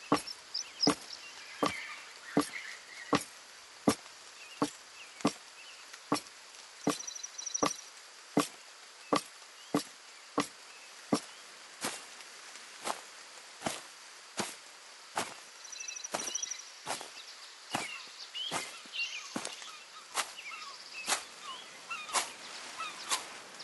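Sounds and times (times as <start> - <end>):
footsteps: 0.0 - 1.8, 2.4 - 3.3, 3.9 - 5.4, 6.1 - 7.8, 9.2 - 10.5, 11.1 - 12.2, 12.8 - 13.0, 13.6 - 15.5, 16.1 - 20.4, 21.0 - 21.4.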